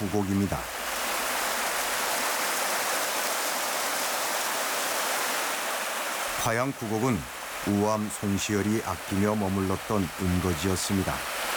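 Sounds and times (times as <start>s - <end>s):
speech: 0.0s - 0.8s, 6.4s - 11.3s
flowing valley stream water: 0.0s - 11.5s.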